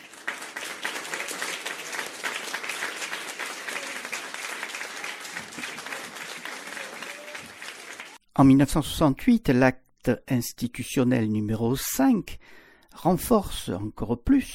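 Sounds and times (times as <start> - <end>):
audience applause: 0.0 - 8.2
speech: 8.4 - 14.5.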